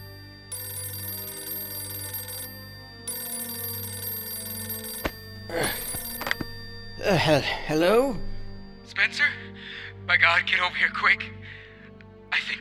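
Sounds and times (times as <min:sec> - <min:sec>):
old-fashioned telephone bell ringing: 0:00.0 - 0:08.9
handset clatter and rustle: 0:04.8 - 0:07.0
speech: 0:07.1 - 0:08.3, 0:08.9 - 0:09.4, 0:10.1 - 0:11.4.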